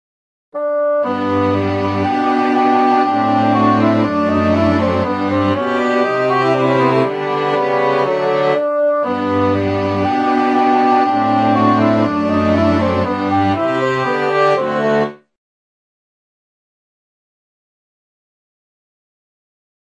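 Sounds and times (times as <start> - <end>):
quartet playing: 0.6 - 15.2.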